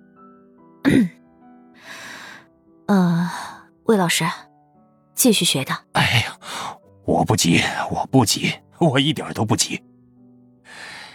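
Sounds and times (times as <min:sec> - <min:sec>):
cough and throat clearing: 0:00.8 - 0:01.2
speech: 0:02.9 - 0:04.5, 0:05.2 - 0:06.5, 0:07.1 - 0:09.9.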